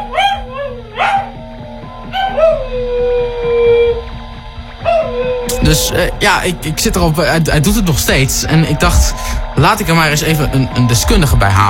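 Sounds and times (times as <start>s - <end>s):
dog whining and howling: 0.0s - 1.4s, 2.0s - 4.2s, 4.8s - 5.5s
speech: 5.7s - 11.6s.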